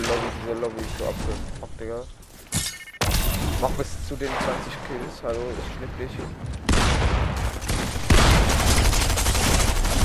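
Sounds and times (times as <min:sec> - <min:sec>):
speech: 0:00.5 - 0:02.3, 0:03.6 - 0:08.0
video game automatic gunfire spray: 0:07.6 - 0:10.0.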